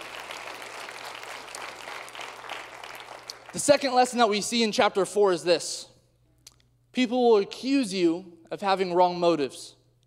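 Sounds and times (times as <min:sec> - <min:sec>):
audience applause: 0:00.0 - 0:03.6
speech: 0:03.5 - 0:05.9, 0:06.9 - 0:09.8.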